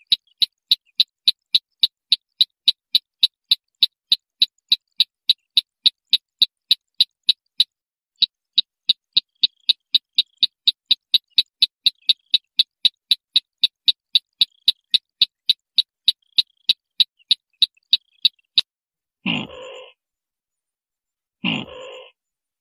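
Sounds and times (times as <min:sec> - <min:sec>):
white-breasted waterhen train of sharp clicks: 0:00.0 - 0:18.7.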